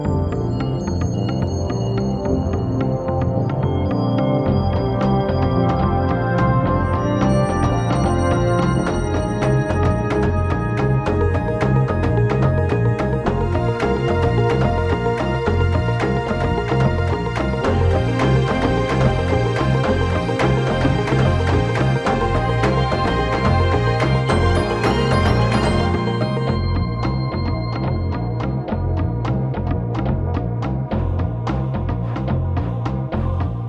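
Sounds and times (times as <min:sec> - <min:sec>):
world music beats: 0:00.2 - 0:33.6.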